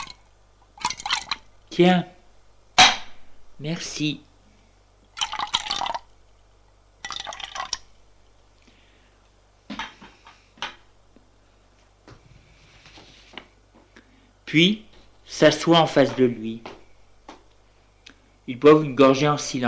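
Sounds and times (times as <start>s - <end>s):
drinks being poured into glasses: 0.0s - 0.2s, 0.8s - 1.5s, 5.1s - 6.1s, 7.0s - 7.9s
speech: 1.8s - 2.1s, 3.6s - 4.3s, 14.5s - 16.7s, 18.5s - 19.6s.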